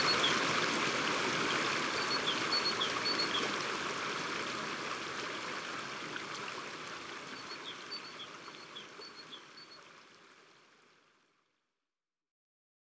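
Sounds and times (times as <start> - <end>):
stream flowing in Ardeche: 0.0 - 11.0.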